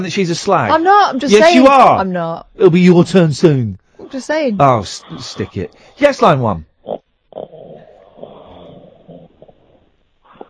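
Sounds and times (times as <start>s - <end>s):
speech: 0.0s - 6.7s
caller snoring down the phone line: 7.3s - 10.4s.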